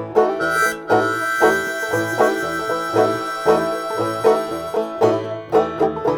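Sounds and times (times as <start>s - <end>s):
instrumental song: 0.2s - 6.1s.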